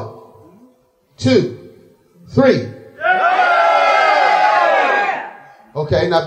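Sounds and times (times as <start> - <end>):
speech: 1.2 - 1.6, 2.3 - 3.4, 5.8 - 6.2
audience shouting in unison: 3.0 - 5.4.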